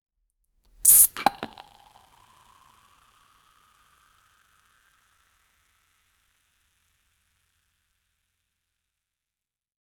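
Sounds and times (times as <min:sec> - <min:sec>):
wine cork opening: 0:00.8 - 0:02.5
liquid pouring: 0:00.8 - 0:03.2.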